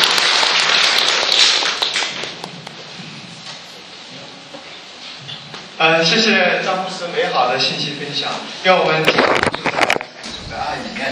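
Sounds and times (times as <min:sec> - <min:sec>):
audience applause: 0:00.0 - 0:02.5
speech: 0:05.8 - 0:09.9.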